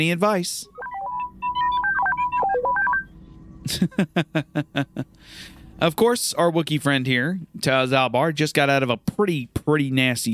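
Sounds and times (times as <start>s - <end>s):
speech: 0.0s - 0.7s, 3.7s - 10.3s
robot droid electronic beeps and bloops: 0.7s - 3.1s
laughter: 3.7s - 5.2s.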